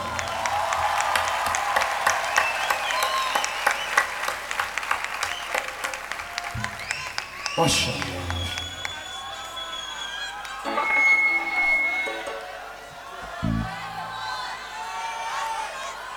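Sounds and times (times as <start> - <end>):
audience applause: 0.0 - 16.1
speech: 7.6 - 8.2.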